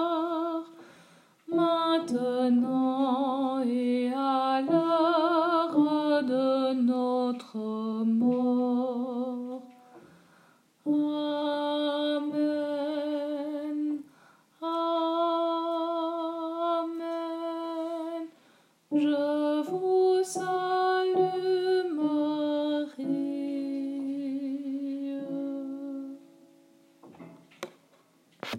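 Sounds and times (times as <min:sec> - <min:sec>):
alto voice singing a Marian hymn: 0:00.0 - 0:00.8, 0:01.5 - 0:09.8, 0:10.8 - 0:26.4.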